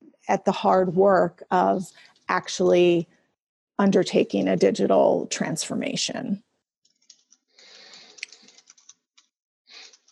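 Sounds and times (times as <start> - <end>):
speech: 0.3 - 3.2, 3.8 - 6.5
quiet typing of notes on a computer keyboard: 6.9 - 10.1.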